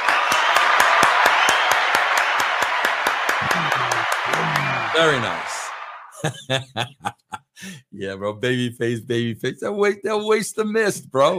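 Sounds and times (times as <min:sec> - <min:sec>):
applause: 0:00.0 - 0:06.2
laughter: 0:03.4 - 0:07.9
speech: 0:05.0 - 0:05.6, 0:06.2 - 0:11.3.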